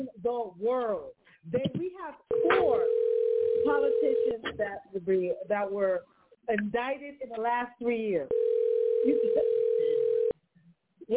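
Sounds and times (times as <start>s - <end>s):
speech: 0.0s - 9.6s
telephone call being dialed on air: 2.3s - 4.4s, 8.3s - 10.3s.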